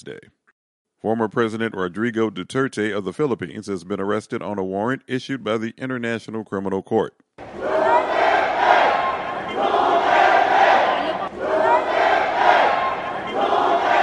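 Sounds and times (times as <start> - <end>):
speech: 0.0 - 0.4, 1.0 - 7.6
crowd shouting and chanting: 7.4 - 14.0.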